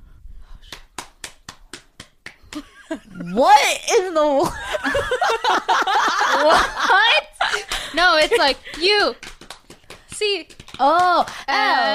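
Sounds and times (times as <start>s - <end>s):
eight-clap cheer hand claps: 0.6s - 2.9s, 7.6s - 11.9s
speech: 2.6s - 9.3s, 10.2s - 11.9s
laughter: 4.5s - 9.0s.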